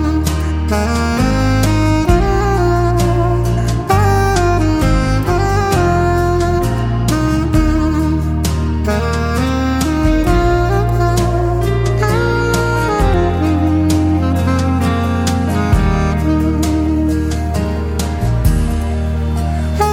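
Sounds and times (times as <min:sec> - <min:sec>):
saxophone music: 0:00.0 - 0:19.9.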